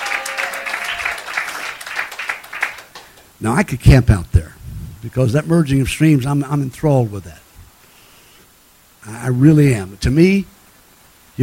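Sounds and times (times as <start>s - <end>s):
crowd clapping: 0.0s - 3.3s
speech: 3.4s - 7.4s, 9.0s - 10.5s.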